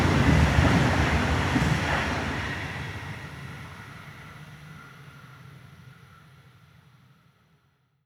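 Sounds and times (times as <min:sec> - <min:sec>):
freight train driving by: 0:00.0 - 0:04.1.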